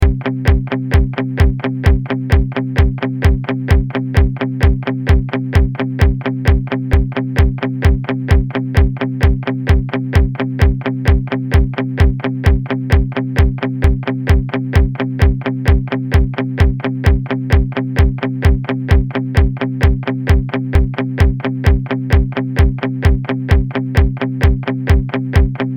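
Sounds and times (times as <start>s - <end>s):
blues music: 0.0s - 25.7s.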